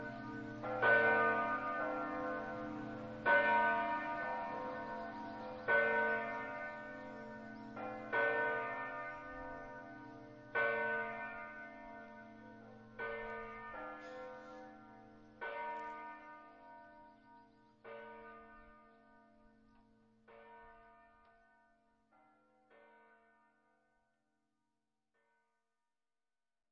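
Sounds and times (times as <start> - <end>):
bells ringing in Gonars: 0.0 - 19.2.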